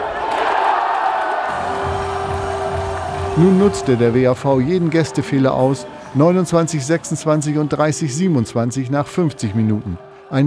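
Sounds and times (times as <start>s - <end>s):
handball spectators cheering: 0.0s - 10.4s
speech: 3.4s - 10.4s.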